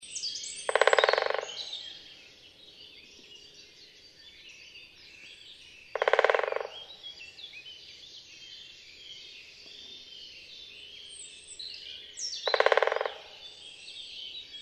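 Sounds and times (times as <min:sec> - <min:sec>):
great spotted woodpecker Dendrocopos major drumming: 0:00.7 - 0:01.6, 0:06.0 - 0:06.9, 0:12.4 - 0:13.5.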